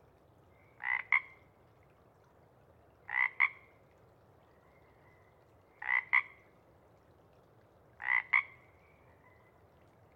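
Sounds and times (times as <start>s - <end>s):
Pacific chorus frog rib-bit calls: 3.1s - 3.6s, 8.0s - 8.5s.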